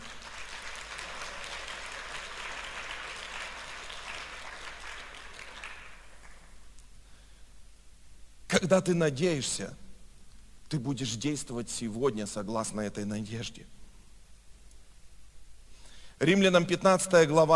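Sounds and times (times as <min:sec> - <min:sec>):
audience applause: 0:00.0 - 0:06.6
speech: 0:08.6 - 0:09.8, 0:10.7 - 0:13.8, 0:16.2 - 0:17.5.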